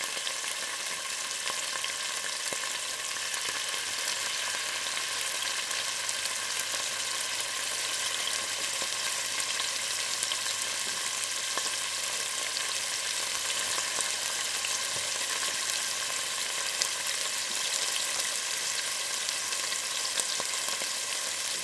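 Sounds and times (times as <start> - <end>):
chicken frying: 0.0 - 21.6.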